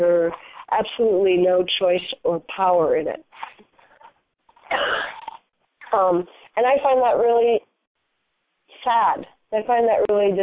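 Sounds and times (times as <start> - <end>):
speech: 0.0 - 3.5, 4.7 - 5.2, 5.9 - 7.7, 8.8 - 10.4
faint breathing: 0.3 - 0.7, 3.7 - 4.2
person coughing: 4.6 - 5.4.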